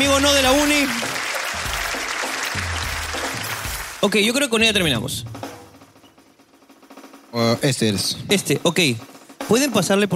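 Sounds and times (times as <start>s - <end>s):
speech: 0.0s - 1.7s, 4.0s - 5.4s, 7.3s - 10.1s
audience applause: 0.0s - 4.4s.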